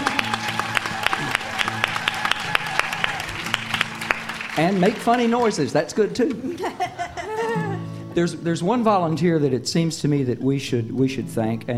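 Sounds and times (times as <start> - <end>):
audience applauding the volunteers at an event: 0.0 - 6.0
speech: 4.6 - 7.0, 8.2 - 11.7
laughter: 6.2 - 7.9.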